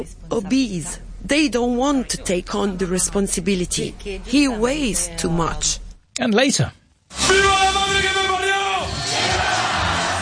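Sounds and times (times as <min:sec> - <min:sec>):
speech: 0:00.0 - 0:08.3
crowd in Spain cheering welcoming World Cup winners: 0:07.2 - 0:10.2
long sustained shout: 0:07.3 - 0:10.2.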